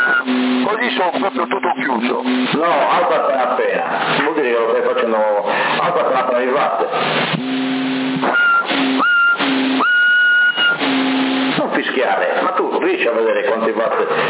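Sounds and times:
whistling tones over a CB radio channel in Sassari: 0.0s - 0.3s, 8.2s - 10.8s
garbled CB radio chatter: 0.0s - 7.1s, 11.6s - 14.2s
CB radio static bursts: 0.0s - 14.2s
speech: 0.7s - 8.5s, 12.0s - 14.2s.

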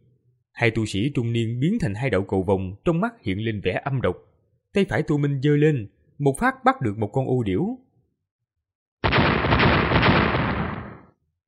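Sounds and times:
speech: 0.6s - 7.8s
explosions amid fighting: 9.0s - 11.1s.

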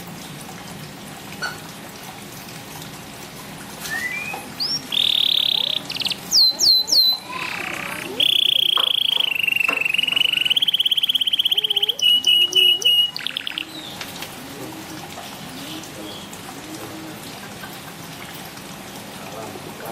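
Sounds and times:
bird singing: 3.9s - 14.0s.

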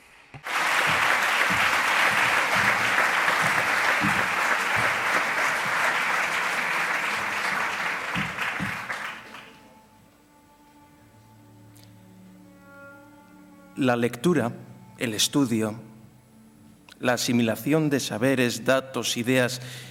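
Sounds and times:
audience applause: 0.4s - 9.6s
speech: 13.8s - 15.9s, 17.0s - 19.8s.

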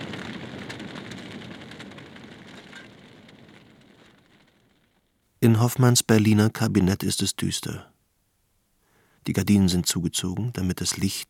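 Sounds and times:
big blaze roaring and crackling in a burning theatre: 0.0s - 5.3s
speech: 5.5s - 7.9s, 9.3s - 11.2s.

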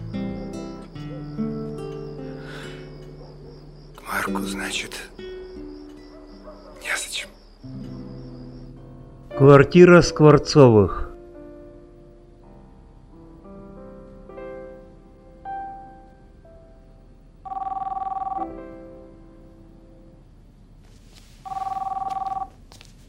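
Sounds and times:
speech: 4.1s - 5.2s, 9.4s - 11.0s
telephone ringing: 17.4s - 18.6s, 21.4s - 22.6s.

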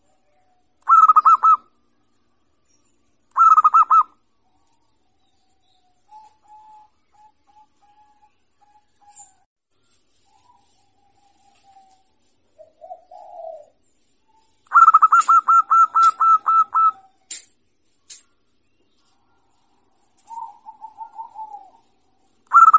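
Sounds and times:
zebra dove singing: 0.3s - 1.7s, 3.3s - 4.2s, 6.0s - 9.4s, 10.3s - 17.2s, 20.2s - 22.7s.

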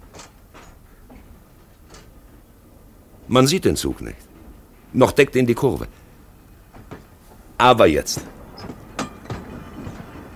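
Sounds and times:
railway level crossing barrier lowering with clicks and rattles: 0.0s - 3.3s, 8.0s - 10.3s
steady low hum: 0.0s - 10.3s
speech: 3.3s - 4.3s, 4.9s - 6.0s, 7.6s - 8.4s.

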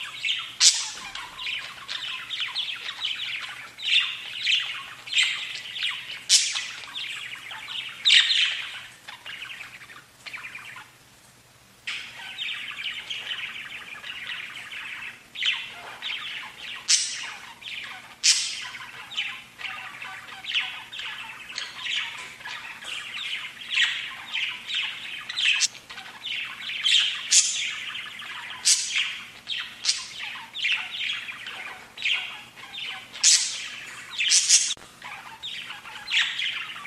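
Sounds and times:
budgerigar chirping: 0.0s - 10.9s, 11.9s - 36.8s
low hum: 0.0s - 36.8s.

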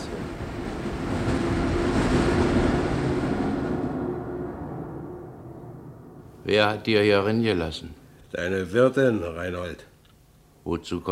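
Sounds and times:
wind blowing: 0.0s - 7.1s
speech: 6.4s - 9.9s, 10.6s - 11.1s.

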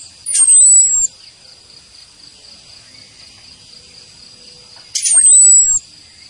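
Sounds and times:
orange-headed thrush giving thin high falling whistle: 0.3s - 1.1s, 5.0s - 5.8s.

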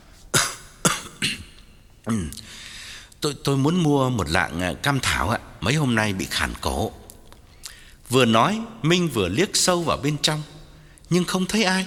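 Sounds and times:
man fake coughing: 0.3s - 2.5s
speech: 2.0s - 2.6s, 3.2s - 7.0s, 8.1s - 11.8s.

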